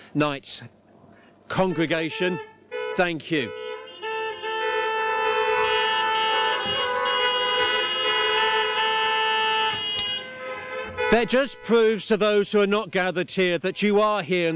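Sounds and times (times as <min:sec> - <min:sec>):
speech: 0:00.1 - 0:00.8, 0:01.5 - 0:03.6, 0:11.1 - 0:14.5
many car horns blaring: 0:01.5 - 0:13.0, 0:13.6 - 0:14.5.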